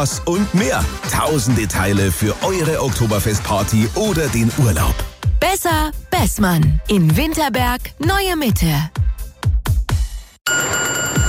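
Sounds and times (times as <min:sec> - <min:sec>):
speech: 0:00.0 - 0:09.0
ice cream truck bell ringing: 0:10.5 - 0:11.2.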